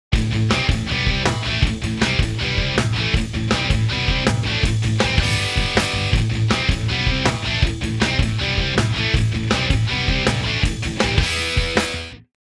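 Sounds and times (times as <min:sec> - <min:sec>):
metal music: 0:00.1 - 0:12.3.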